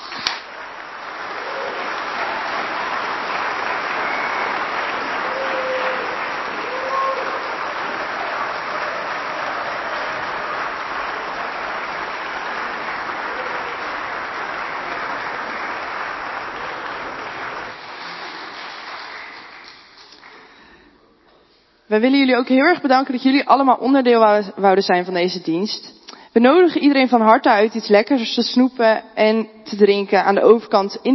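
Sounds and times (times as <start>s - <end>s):
audience applause: 0.0s - 20.9s
speech: 21.9s - 31.1s.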